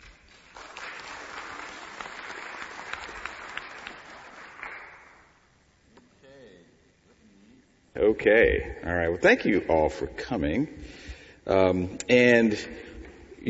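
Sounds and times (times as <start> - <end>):
audience applause welcoming a doctor taking the stage: 0.0 - 5.3
speech: 8.1 - 12.8.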